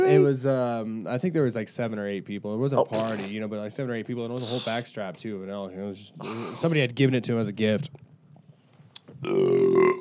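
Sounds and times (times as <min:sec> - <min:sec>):
speech: 0:00.1 - 0:08.1, 0:09.2 - 0:09.9
loud burp: 0:09.2 - 0:09.9.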